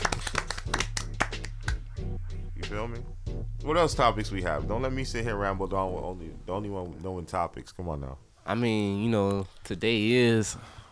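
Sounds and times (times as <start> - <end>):
hand clapping: 0.0 - 2.0
speech: 2.7 - 10.8.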